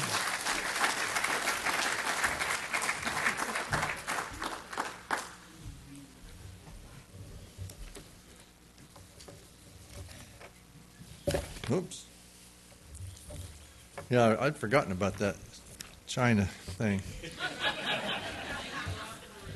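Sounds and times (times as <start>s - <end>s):
audience applause: 0.0s - 5.4s
speech: 11.7s - 12.1s, 14.1s - 15.6s, 16.2s - 17.3s
laughter: 17.1s - 19.5s.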